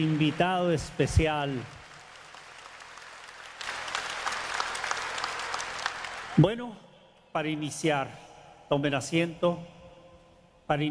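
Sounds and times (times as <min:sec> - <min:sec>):
speech: 0:00.0 - 0:01.8, 0:06.4 - 0:06.8, 0:07.4 - 0:09.8, 0:10.7 - 0:10.8
audience applause: 0:00.0 - 0:06.4.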